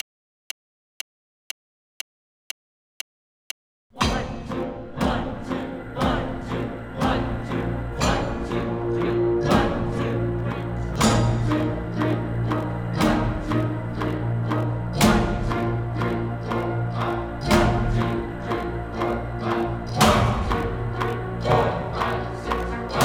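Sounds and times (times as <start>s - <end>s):
drone: 4.1s - 23.0s
musicians playing: 5.0s - 23.0s.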